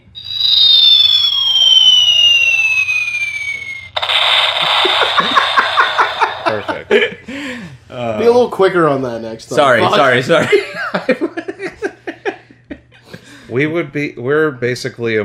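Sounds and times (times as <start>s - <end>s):
falling-bomb sound effect whistle: 0.0s - 6.4s
faint constant low hum: 0.0s - 7.1s
bomb explosion sound effect: 0.2s - 6.6s
laughter: 4.8s - 7.5s, 9.8s - 13.2s
speech: 8.4s - 11.4s, 13.5s - 15.2s.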